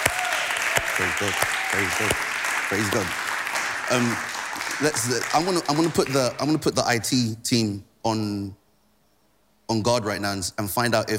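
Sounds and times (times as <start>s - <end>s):
audience clapping: 0.0s - 7.0s
speech: 1.0s - 3.3s, 3.9s - 8.6s, 9.7s - 11.1s.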